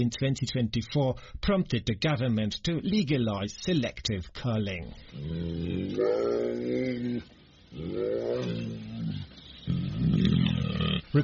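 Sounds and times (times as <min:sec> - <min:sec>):
speech: 0:00.0 - 0:10.5
brown bear roaring: 0:05.1 - 0:11.1.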